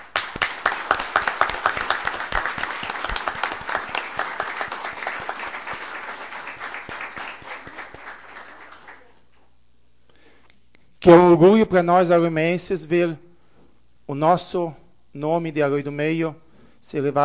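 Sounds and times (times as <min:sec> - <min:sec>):
audience applause: 0:00.0 - 0:09.2
speech: 0:11.0 - 0:13.2, 0:14.1 - 0:17.2.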